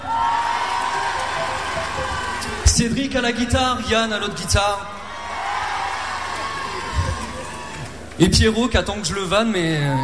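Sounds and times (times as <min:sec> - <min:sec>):
large audience cheering and applauding: 0:00.0 - 0:03.1, 0:05.1 - 0:08.3
speech: 0:02.8 - 0:05.0, 0:08.2 - 0:10.0.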